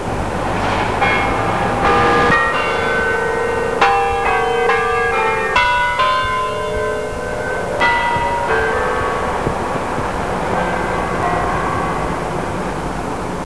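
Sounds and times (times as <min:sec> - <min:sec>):
bells ringing: 0:01.0 - 0:13.1.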